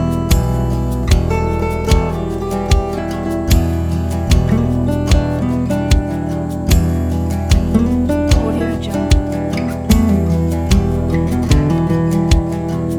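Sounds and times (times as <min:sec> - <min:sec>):
western music loop: 0:00.0 - 0:12.9.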